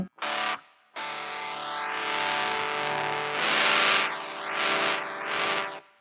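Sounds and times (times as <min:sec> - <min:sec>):
distorted electric guitar shaped by a talkbox: 0:00.0 - 0:05.8.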